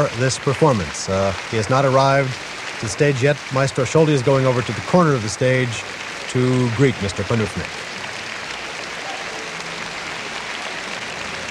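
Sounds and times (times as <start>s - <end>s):
speech: 0.0s - 7.8s
symphony orchestra and concert hall audience applause: 0.0s - 11.4s.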